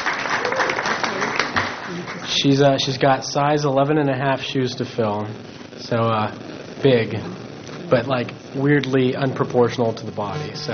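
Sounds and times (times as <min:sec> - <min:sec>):
school audience clapping for the incoming student body president: 0:00.0 - 0:02.6
speech: 0:02.3 - 0:10.7.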